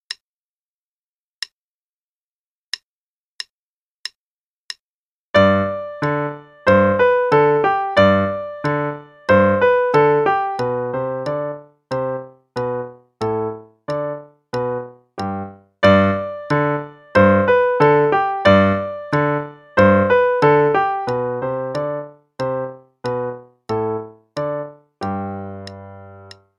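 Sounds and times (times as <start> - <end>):
musette piece: 5.4 - 26.5.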